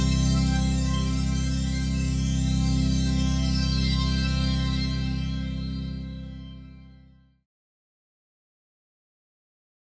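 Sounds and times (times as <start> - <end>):
Yamaha SY77 synthesizer pad: 0.0 - 7.4.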